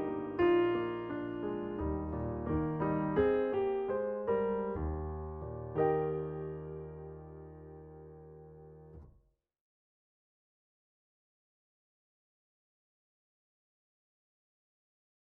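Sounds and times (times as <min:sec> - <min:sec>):
piano piece: 0:00.0 - 0:09.1.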